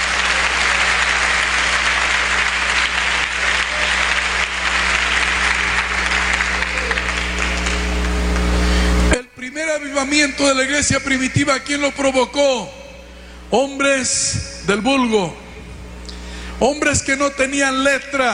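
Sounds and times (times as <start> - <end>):
audience applause: 0.0 - 8.9
speech: 10.0 - 12.8, 13.5 - 15.4, 16.6 - 18.3.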